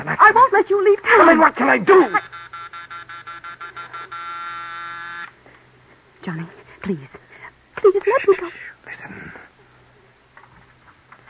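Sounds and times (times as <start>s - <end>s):
speech: 0.0s - 2.3s, 6.2s - 7.2s
doorbell buzzer ringing: 1.9s - 5.3s.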